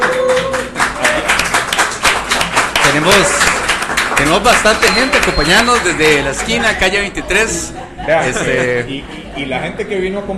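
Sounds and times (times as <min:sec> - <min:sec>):
audience applause from street crowd: 0:00.0 - 0:06.9
speech: 0:03.0 - 0:03.5, 0:04.2 - 0:10.3.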